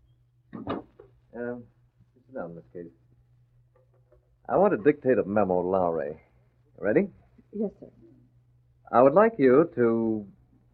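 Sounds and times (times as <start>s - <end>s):
door closing: 0.5s - 1.1s
speech: 1.4s - 1.8s, 2.4s - 3.0s, 4.5s - 8.0s, 8.9s - 10.4s.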